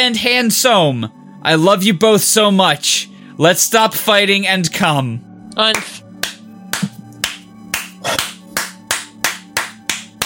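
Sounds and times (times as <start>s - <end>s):
speech: 0.0s - 6.0s
low steady tonal background: 0.7s - 10.2s
slow hand claps: 5.7s - 10.2s.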